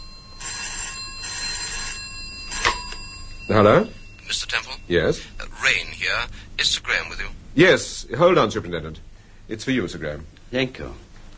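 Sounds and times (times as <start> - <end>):
old-style electric telephone bell ringing: 0.0 - 5.9
speech: 3.5 - 11.0.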